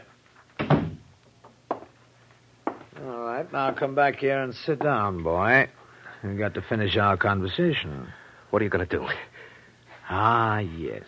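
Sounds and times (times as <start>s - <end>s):
door being closed: 0.6s - 1.1s
speech: 3.0s - 9.4s, 10.1s - 11.0s.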